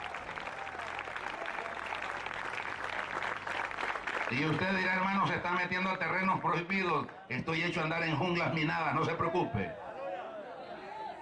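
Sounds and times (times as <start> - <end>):
audience applause: 0.0 - 7.2
speech: 4.3 - 9.9.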